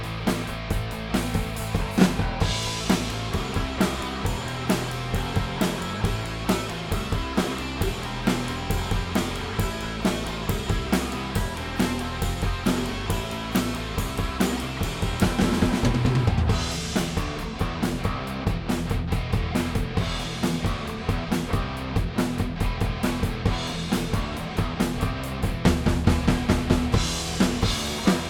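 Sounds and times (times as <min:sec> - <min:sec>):
drum stems: 0:00.0 - 0:28.2.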